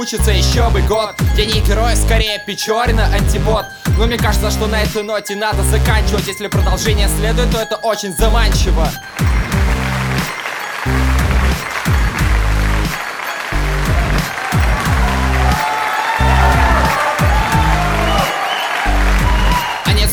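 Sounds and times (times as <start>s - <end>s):
speech: 0.0s - 9.4s
loud music with deep pulsing bass chords: 0.1s - 13.0s, 13.6s - 20.1s
audience applauding: 9.1s - 20.1s.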